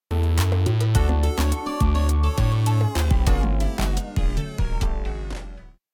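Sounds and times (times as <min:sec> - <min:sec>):
music: 0:00.0 - 0:05.8.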